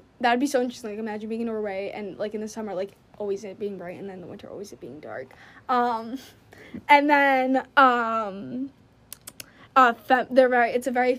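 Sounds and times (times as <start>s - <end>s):
speech: 0.2s - 8.8s, 9.8s - 11.1s
tongue clicking: 9.1s - 9.5s.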